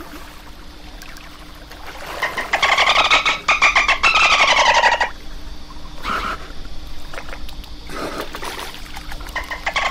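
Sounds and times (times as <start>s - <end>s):
dolphin pulsed squealing whistles: 2.4s - 5.2s, 6.0s - 6.5s.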